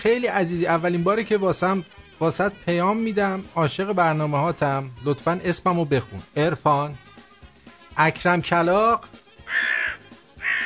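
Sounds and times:
speech: 0:00.0 - 0:07.1, 0:08.0 - 0:09.7
voice imitating crow caws: 0:09.4 - 0:10.6.

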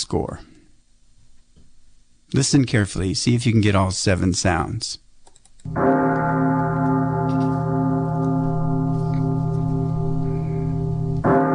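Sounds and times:
speech: 0:00.1 - 0:00.6, 0:02.3 - 0:05.0, 0:05.6 - 0:06.6
church bell at midnight: 0:05.7 - 0:11.5.

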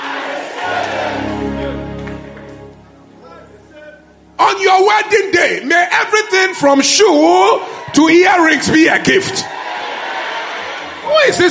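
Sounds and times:
audience clapping and shouting: 0:00.0 - 0:02.8, 0:09.5 - 0:11.4
speech: 0:04.6 - 0:09.6, 0:11.1 - 0:11.4.

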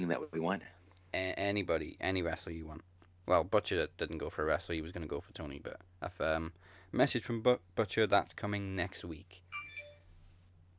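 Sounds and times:
speech: 0:00.0 - 0:09.4
mobile phone notification: 0:09.5 - 0:10.1.

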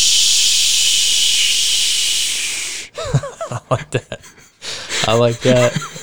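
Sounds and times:
Busch Light beer can cracked open with a hiss: 0:00.0 - 0:02.9
laughter: 0:02.9 - 0:06.0
speech: 0:03.7 - 0:04.2, 0:05.1 - 0:05.9.

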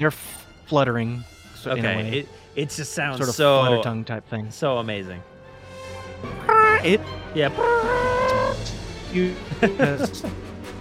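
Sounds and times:
speech: 0:00.0 - 0:05.3, 0:06.2 - 0:10.5
dinosaur roar sound effect: 0:07.5 - 0:08.6
laughter: 0:09.4 - 0:10.4.

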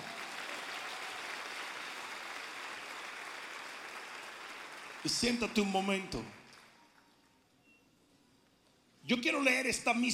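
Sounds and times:
applause: 0:00.0 - 0:07.2
speech: 0:05.0 - 0:06.4, 0:09.1 - 0:10.1.

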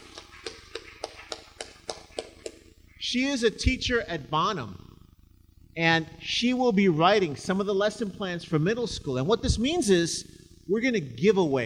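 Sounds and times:
slow hand claps: 0:00.0 - 0:02.6
speech: 0:03.1 - 0:04.8, 0:05.8 - 0:11.6.

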